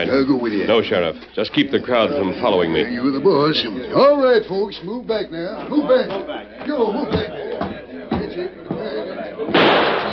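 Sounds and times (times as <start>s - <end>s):
speech: 0.0s - 7.3s
gunshot through a window: 9.5s - 10.1s.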